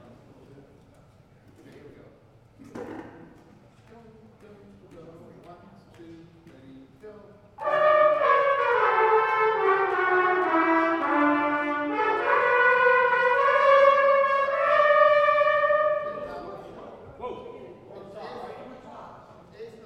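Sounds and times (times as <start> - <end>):
brass band playing a parade tune: 7.6 - 16.7.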